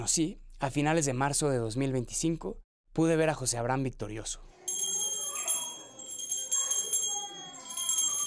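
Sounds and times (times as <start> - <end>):
speech: 0.0 - 4.6
small golden handbell shaken during mass: 4.6 - 8.2.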